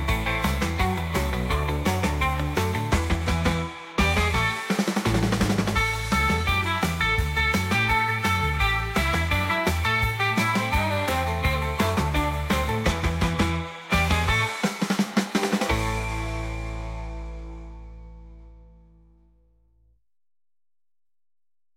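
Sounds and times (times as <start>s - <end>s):
hand claps: 0.0s - 16.0s
organ: 0.0s - 18.6s
surf rock music: 0.0s - 18.8s.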